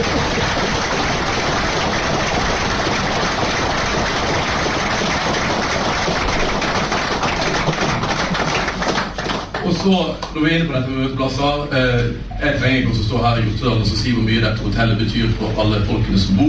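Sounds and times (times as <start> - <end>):
audience applause: 0.0 - 10.4
speech: 9.8 - 16.4.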